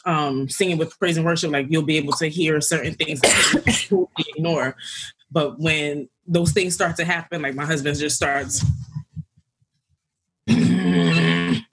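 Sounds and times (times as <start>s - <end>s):
speech: 0.0s - 8.9s
voice imitating a low growl: 10.5s - 11.7s.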